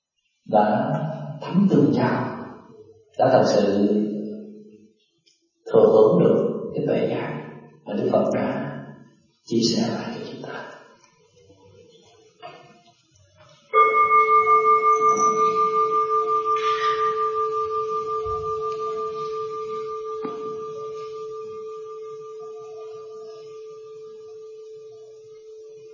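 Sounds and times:
speech: 0.5s - 2.3s, 3.2s - 4.1s, 5.7s - 7.3s, 7.9s - 8.6s, 9.4s - 10.7s
mindfulness bell being struck: 13.7s - 24.3s.

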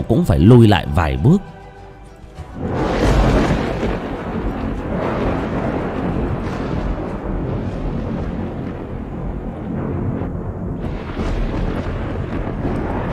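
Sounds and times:
speech: 0.0s - 1.6s
bright crackling bursts: 0.0s - 13.1s
deep earthquake-like rumbling from the sky: 1.4s - 13.1s
thunder-like booms: 2.5s - 13.1s.

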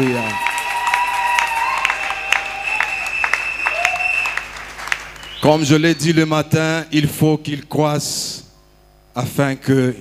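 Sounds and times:
congregation applauding during a Sunday closing service at a church: 0.0s - 5.9s
speech: 5.5s - 8.4s, 9.2s - 9.9s.

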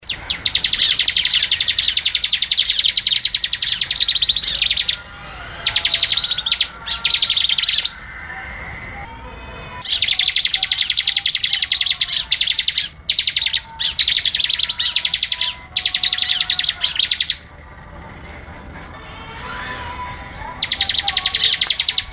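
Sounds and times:
bird song of rapid high-pitched chirping notes: 0.0s - 8.0s, 9.8s - 17.4s, 20.6s - 22.1s.

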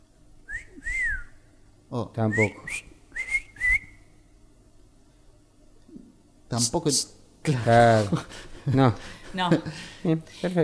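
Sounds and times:
wolf whistle at a young woman walking past: 0.5s - 1.4s, 2.3s - 4.1s
speech: 1.9s - 2.9s, 6.5s - 10.6s.

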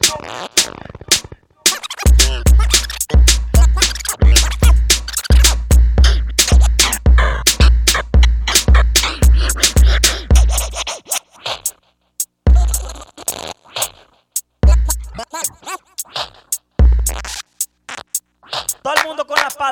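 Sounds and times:
steady thumping bass beat: 0.0s - 11.2s, 12.2s - 13.4s, 14.4s - 19.7s
DJ turntable scratching: 0.0s - 19.7s.

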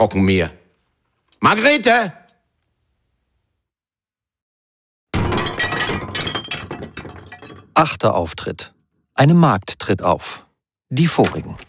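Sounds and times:
speech: 0.0s - 0.6s, 1.4s - 2.2s, 7.8s - 11.6s
glass of water clinking and rattling: 5.2s - 7.8s.

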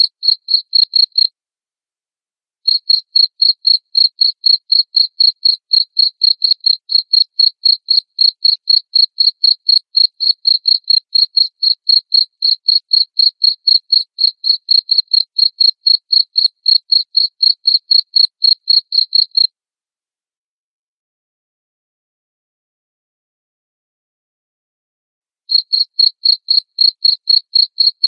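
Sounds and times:
cricket chirping: 0.0s - 1.3s, 2.7s - 19.5s, 25.5s - 28.0s.

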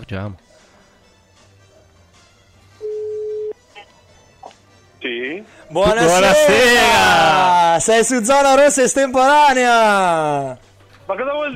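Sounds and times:
speech: 0.1s - 0.5s, 5.0s - 11.5s
phone call connecting tone on a radio show: 2.8s - 3.6s.

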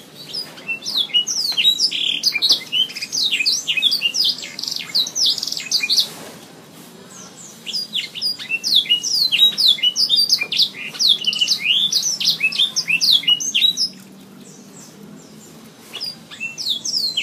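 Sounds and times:
Oriental magpie-robin singing high chirps and whistles: 0.0s - 6.2s, 7.2s - 17.2s.

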